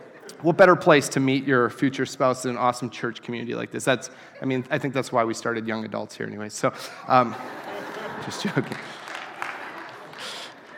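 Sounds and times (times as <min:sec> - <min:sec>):
laughter: 0:00.0 - 0:00.9, 0:06.8 - 0:10.7
speech: 0:00.4 - 0:09.0
audience clapping: 0:07.3 - 0:10.7.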